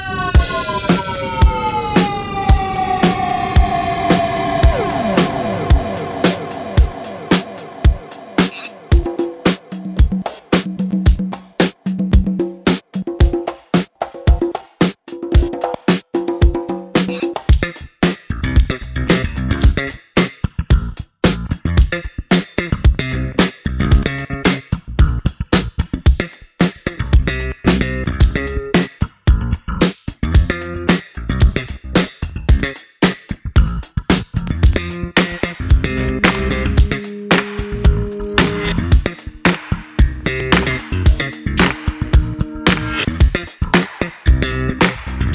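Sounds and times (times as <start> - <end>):
instrumental music: 0.3 - 25.4, 26.1 - 45.3.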